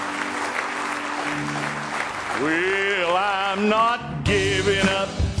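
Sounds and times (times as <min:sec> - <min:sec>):
church congregation clapping in praise: 0:00.0 - 0:04.0
speech: 0:01.3 - 0:01.8, 0:02.4 - 0:05.3.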